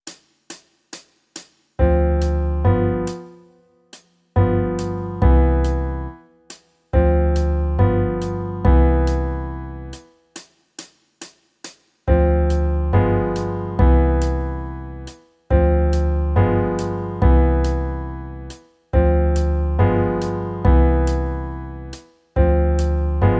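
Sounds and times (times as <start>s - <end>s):
jazz backing music: 1.8s - 3.5s, 4.4s - 6.2s, 7.0s - 10.0s, 12.1s - 23.3s.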